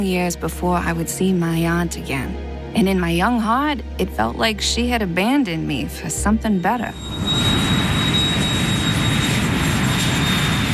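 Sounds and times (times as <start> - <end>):
speech: 0.0 - 7.6
airplane flying overhead: 6.9 - 10.7.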